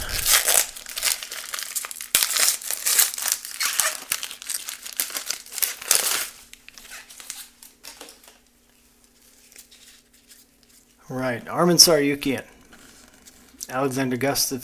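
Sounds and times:
trading card pack foil wrapper being torn open: 0.0s - 8.4s
speech: 11.1s - 12.5s, 13.7s - 14.6s.

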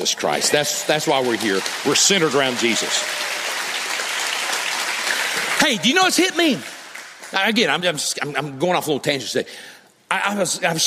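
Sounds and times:
speech: 0.0s - 3.4s, 5.6s - 6.7s, 7.3s - 10.8s
audience cheering and clapping: 0.0s - 7.4s.

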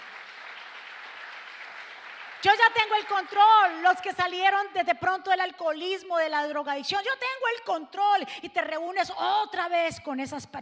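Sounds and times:
audience applause: 0.0s - 3.8s
speech: 2.4s - 10.6s.

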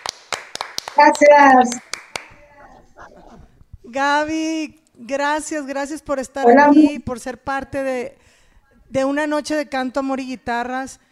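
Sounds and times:
applause: 0.0s - 2.4s
speech: 1.0s - 1.9s, 3.9s - 8.2s, 8.9s - 11.0s.

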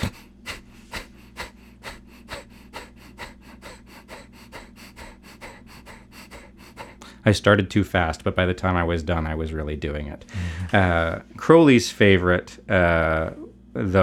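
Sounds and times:
kapalabhati forceful yogic breathing: 0.0s - 7.3s
speech: 7.2s - 14.0s.

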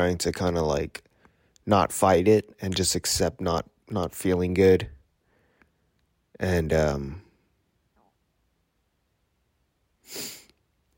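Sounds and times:
speech: 0.0s - 5.0s, 6.4s - 7.2s, 10.1s - 10.3s
sharp sniff from someone with the sniffles: 10.0s - 10.6s.

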